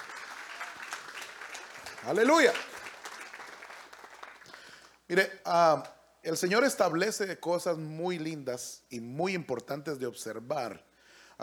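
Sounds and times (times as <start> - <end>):
audience applauding: 0.0 - 5.0
speech: 2.0 - 2.7, 5.1 - 11.4.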